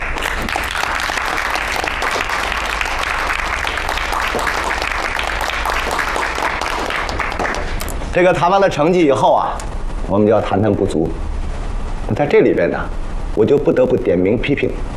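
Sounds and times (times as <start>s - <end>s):
warm audience applause: 0.0s - 8.0s
speech: 8.2s - 11.3s, 12.1s - 14.9s.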